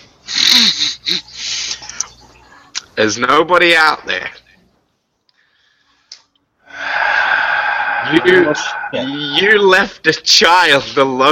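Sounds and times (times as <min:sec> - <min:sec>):
speech: 0:03.0 - 0:04.4, 0:08.1 - 0:11.3
voice imitating a hooting call with breathy blows: 0:06.7 - 0:09.7.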